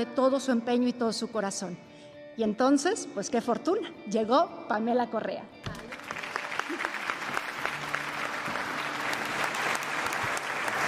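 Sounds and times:
speech: 0:00.0 - 0:05.6
studio audience applause: 0:05.9 - 0:10.8.

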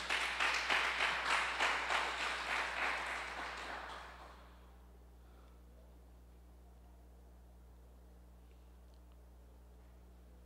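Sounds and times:
crowd applause: 0:00.0 - 0:04.5.

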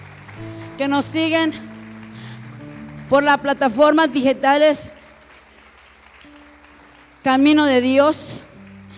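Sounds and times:
audience applause: 0:00.0 - 0:04.0, 0:05.0 - 0:07.5
speech: 0:00.4 - 0:01.7, 0:03.1 - 0:05.0, 0:07.2 - 0:08.5.

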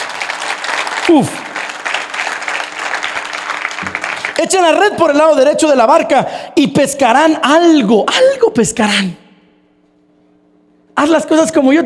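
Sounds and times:
audience applauding: 0:00.0 - 0:04.5
speech: 0:01.1 - 0:01.4, 0:04.4 - 0:09.2, 0:11.0 - 0:11.8.

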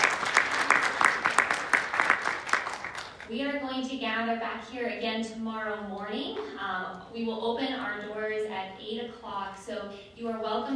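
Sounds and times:
audience applause: 0:00.0 - 0:03.3
speech: 0:03.3 - 0:10.7.

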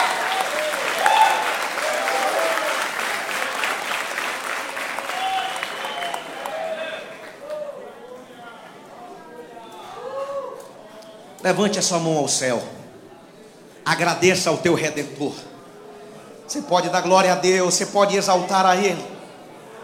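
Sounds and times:
audience applause: 0:00.0 - 0:07.8
speech: 0:11.5 - 0:12.8, 0:13.9 - 0:15.5, 0:16.5 - 0:19.1.

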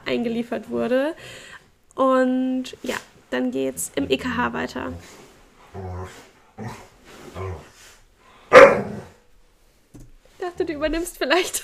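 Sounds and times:
speech: 0:00.1 - 0:05.2, 0:05.8 - 0:07.7, 0:10.6 - 0:11.6
dog barking: 0:08.5 - 0:09.2.

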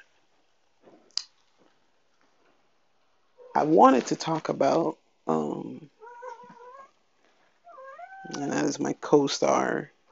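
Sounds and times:
speech: 0:03.6 - 0:05.9, 0:08.3 - 0:10.0
hungry house cat named Bear meowing for its midnight snack: 0:06.0 - 0:07.0, 0:07.7 - 0:08.4.

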